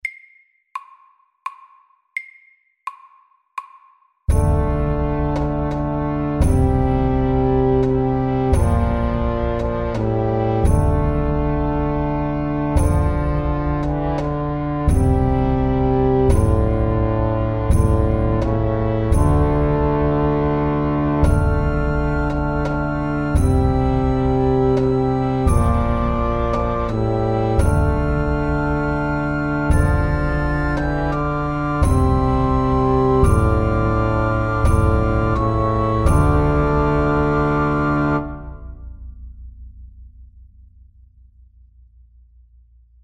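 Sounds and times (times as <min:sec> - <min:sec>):
hemiola rhythm: 0:00.0 - 0:38.9.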